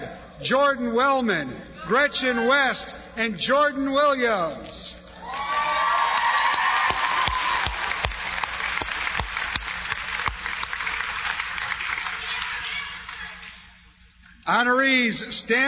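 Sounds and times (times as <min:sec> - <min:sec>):
speech: 0:00.4 - 0:05.2, 0:14.5 - 0:15.6
audience applause and cheering: 0:05.2 - 0:13.7.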